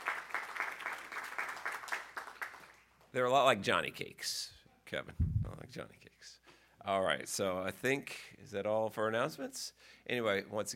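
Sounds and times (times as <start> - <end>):
audience applause: 0.0 - 2.8
speech: 3.1 - 10.7.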